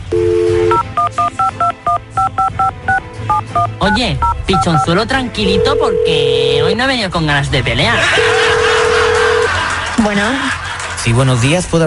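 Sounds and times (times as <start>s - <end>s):
telephone dial tone: 0.1s - 2.7s, 5.6s - 6.7s, 8.2s - 9.5s
touch-tone beeps of a phone number being dialed: 0.1s - 6.8s
speech: 3.6s - 8.6s, 10.0s - 11.8s
laughter: 7.8s - 11.4s.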